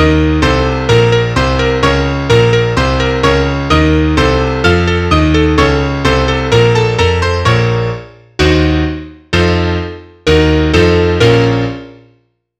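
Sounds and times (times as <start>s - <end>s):
piano: 0.0s - 12.4s.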